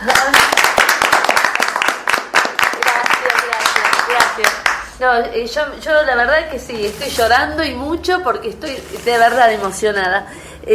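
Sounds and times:
audience applause: 0.1 - 4.8
speech: 4.4 - 10.7.

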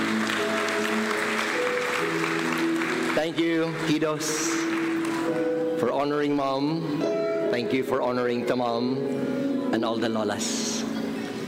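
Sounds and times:
audience applause: 0.0 - 5.5
speech: 3.2 - 4.7, 5.8 - 10.8.

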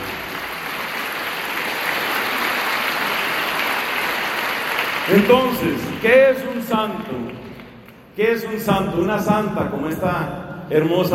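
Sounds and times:
audience applause: 0.0 - 8.0
speech: 5.1 - 7.4, 8.2 - 11.1.

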